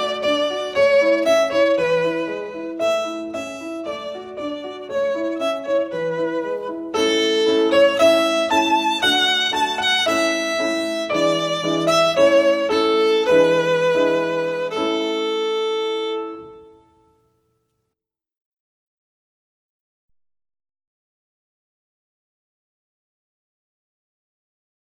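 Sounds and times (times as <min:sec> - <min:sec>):
violin playing a folk song: 0:00.0 - 0:16.9.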